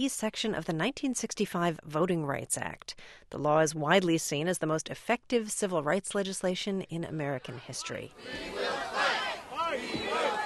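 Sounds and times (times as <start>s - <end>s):
speech: 0.0s - 9.0s
crowd shouting outside the Supreme Court over the 1965 Voting Rights Act: 7.4s - 10.4s.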